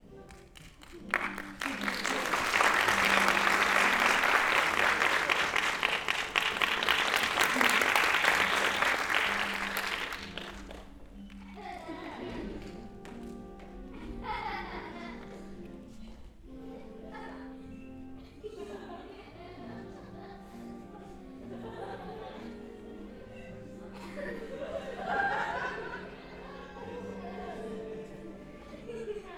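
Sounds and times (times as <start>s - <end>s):
music at a clown performance: 0.0s - 29.3s
audience applause at a clown performance: 0.3s - 11.6s
laughter: 1.0s - 16.0s, 16.7s - 29.3s.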